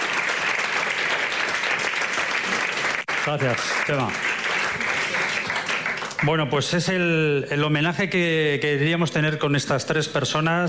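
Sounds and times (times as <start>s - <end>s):
applause: 0.0s - 7.0s
speech: 3.2s - 4.4s, 6.2s - 10.6s.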